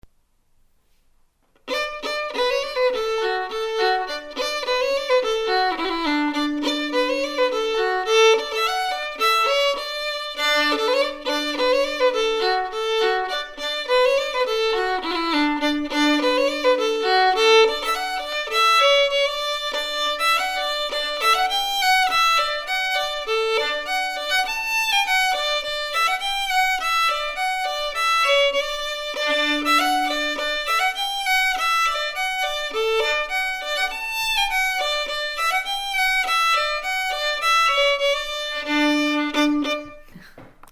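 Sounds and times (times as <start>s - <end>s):
fiddle playing polka: 1.6s - 40.2s.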